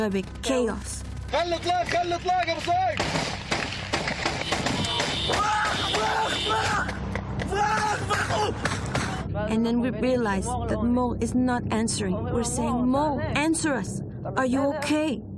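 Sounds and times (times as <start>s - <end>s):
speech: 0.0s - 3.5s, 5.2s - 7.0s, 7.6s - 15.3s
gunshots: 3.0s - 6.5s.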